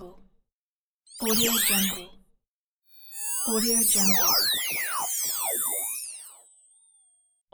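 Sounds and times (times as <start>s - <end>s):
digital sound effects: 1.1s - 2.1s, 2.9s - 7.3s.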